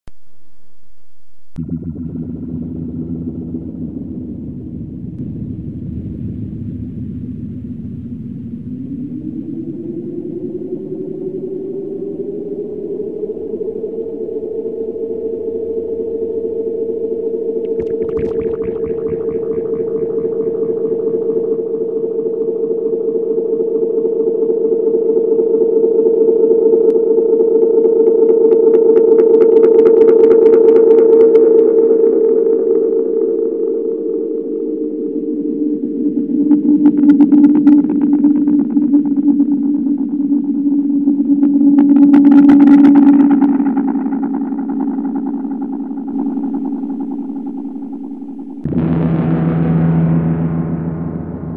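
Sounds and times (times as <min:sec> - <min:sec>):
microsynth: 0:01.1 - 0:05.2, 0:08.9 - 0:51.5.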